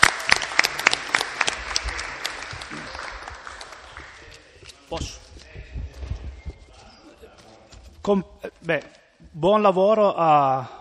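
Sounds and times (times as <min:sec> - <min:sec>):
assembly applause: 0:00.0 - 0:04.6
speech: 0:04.9 - 0:05.2, 0:08.0 - 0:10.7.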